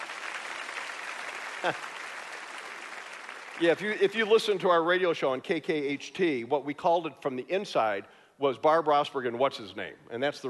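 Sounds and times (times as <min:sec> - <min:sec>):
audience applause for a woman stepping off after speaking: 0:00.0 - 0:04.1
speech: 0:01.6 - 0:02.0, 0:03.6 - 0:10.4.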